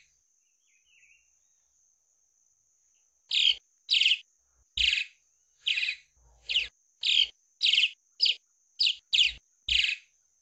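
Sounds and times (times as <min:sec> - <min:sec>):
swallow singing: 0:03.3 - 0:04.2, 0:05.7 - 0:10.0.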